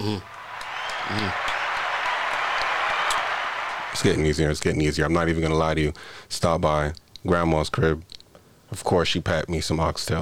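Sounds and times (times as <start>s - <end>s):
speech: 0.0s - 0.3s, 1.1s - 1.5s, 4.0s - 10.2s
applause: 0.0s - 4.4s.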